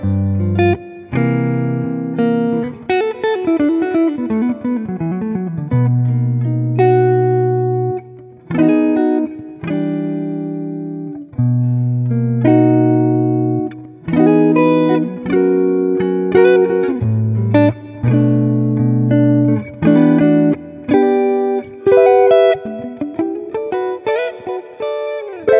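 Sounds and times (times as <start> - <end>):
R and B guitars: 0.0 - 25.5.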